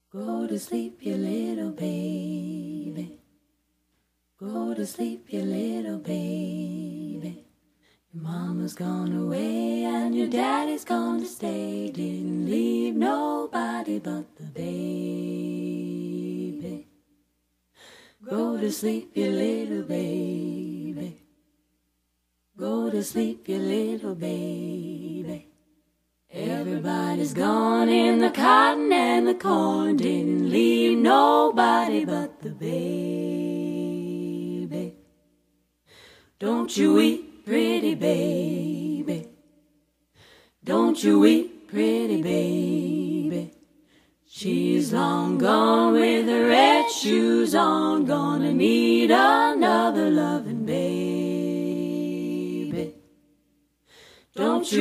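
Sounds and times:
a cappella singing: 0:00.0 - 0:03.5, 0:04.3 - 0:17.2, 0:17.8 - 0:21.5, 0:22.5 - 0:54.7.

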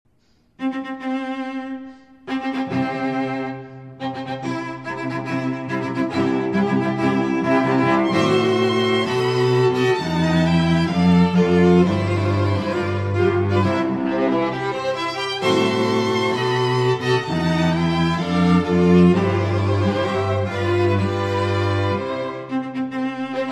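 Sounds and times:
classical quartet playing: 0:00.6 - 0:23.5.

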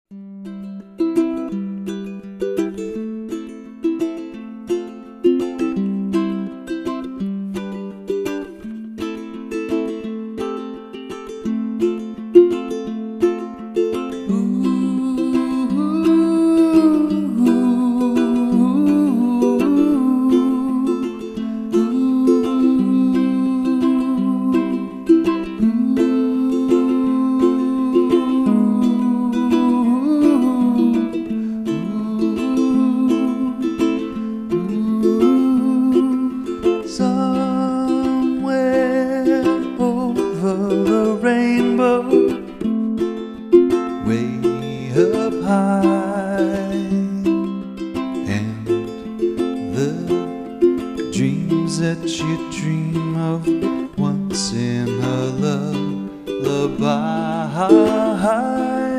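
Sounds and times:
ukulele: 0:00.1 - 0:58.9.

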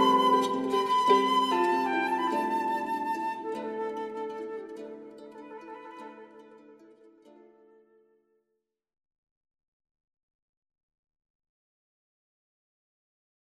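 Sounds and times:
harp and flute Celtic music: 0:00.0 - 0:08.2.

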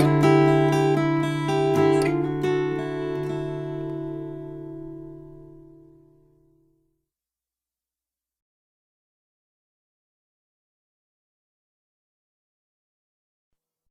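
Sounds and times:
instrumental music: 0:00.0 - 0:06.8.

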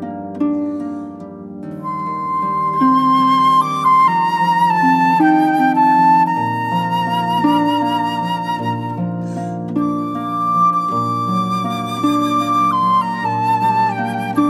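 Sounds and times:
harp: 0:00.0 - 0:14.4
flute: 0:00.6 - 0:14.4.

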